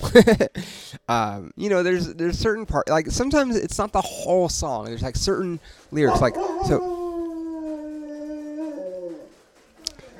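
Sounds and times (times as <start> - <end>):
speech: 0.1 - 7.0
excited dog howling: 6.1 - 9.4.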